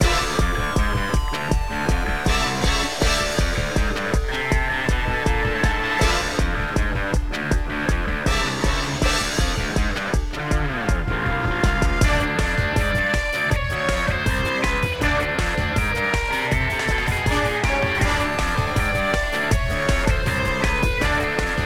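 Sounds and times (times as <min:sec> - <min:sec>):
combat music loop: 0:00.0 - 0:21.6.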